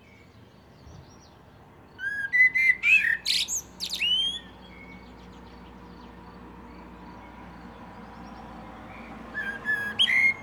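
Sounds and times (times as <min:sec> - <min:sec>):
common blackbird fluted whistles and high squeaks: 0:02.0 - 0:04.9, 0:09.3 - 0:10.4.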